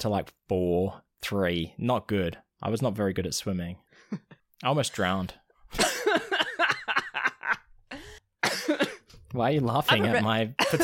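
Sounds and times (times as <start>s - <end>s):
speech: 0.0s - 6.3s, 8.7s - 10.8s
person coughing: 5.8s - 7.2s, 8.4s - 9.2s, 10.0s - 10.8s
laughter: 5.8s - 8.0s, 9.9s - 10.8s.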